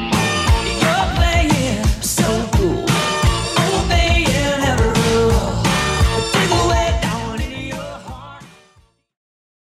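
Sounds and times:
174 bpm electronic music: 0.0s - 8.9s.

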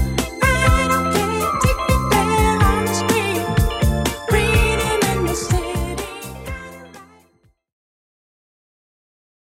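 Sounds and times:
1980s-style music at 124 BPM: 0.0s - 7.5s.

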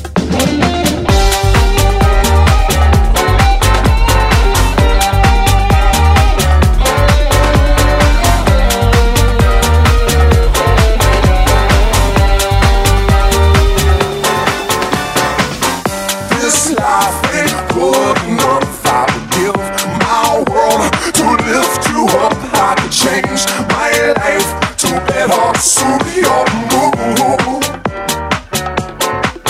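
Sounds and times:
house music vocals: 0.4s - 29.4s.

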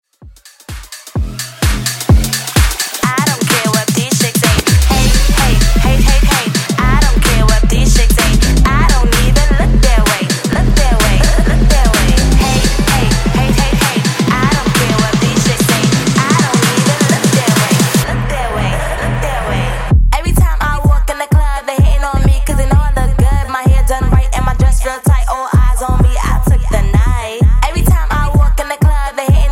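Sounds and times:
2000s bass house edit: 0.0s - 29.5s.

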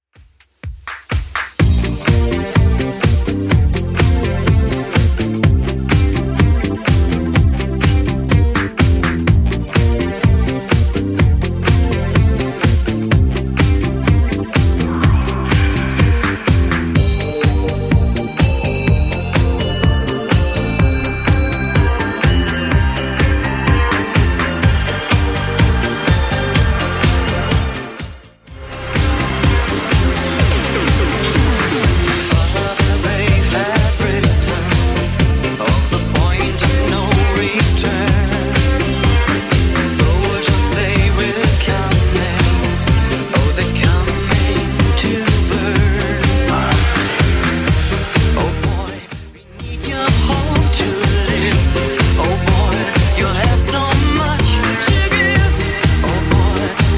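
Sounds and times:
80s Redrum drum machine beat: 0.1s - 56.9s.

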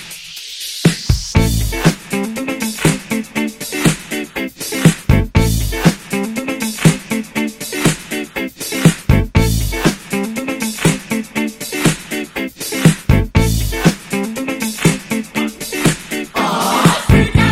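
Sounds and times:
funk music: 0.9s - 17.5s.

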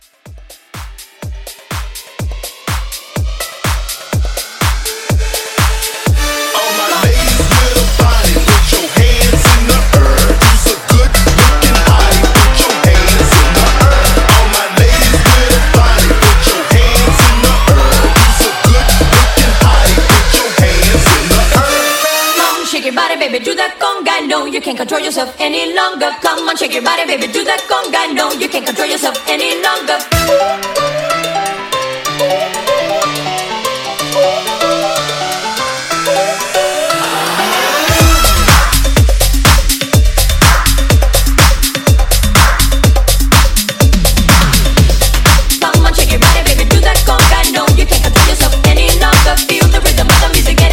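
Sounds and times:
conga drums: 0.0s - 6.4s, 7.0s - 22.6s, 26.8s - 50.7s
124 BPM Latin house music: 0.0s - 50.7s.

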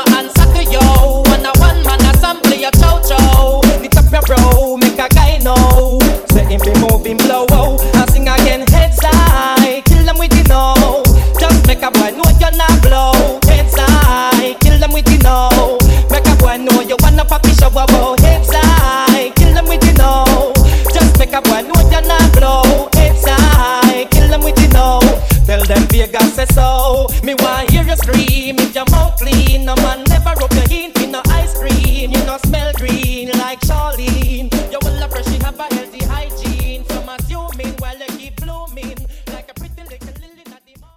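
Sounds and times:
moombahton drum beat: 0.0s - 40.9s.

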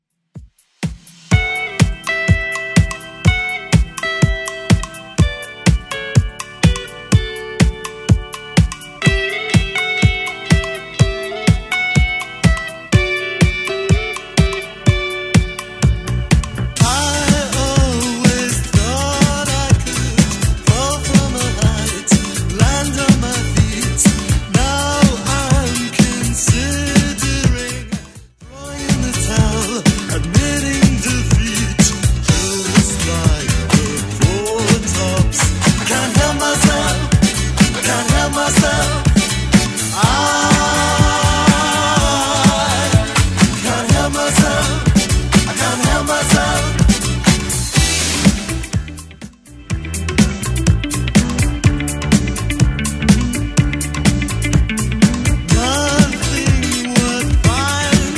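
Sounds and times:
80s style music at 124 BPM: 0.4s - 58.1s.

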